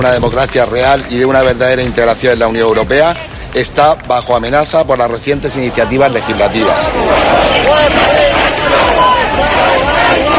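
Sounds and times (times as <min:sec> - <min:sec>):
speech: 0:00.0 - 0:08.6
protest crowd chanting slogans: 0:05.4 - 0:10.3.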